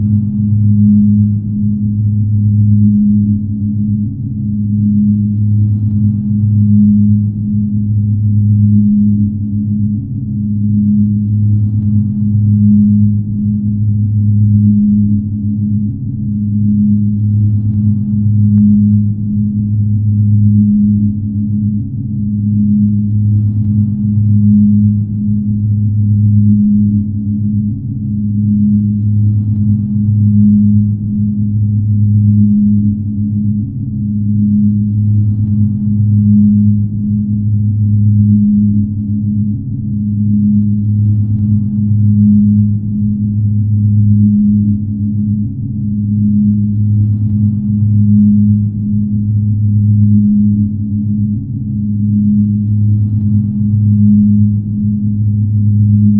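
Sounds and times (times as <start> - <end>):
ambience: 0.0 - 56.1.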